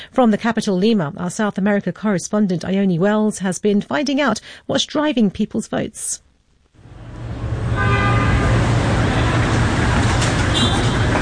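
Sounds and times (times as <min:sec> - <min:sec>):
speech: 0:00.2 - 0:06.3
dense city traffic: 0:06.8 - 0:11.1
car horns tooting: 0:07.6 - 0:11.1.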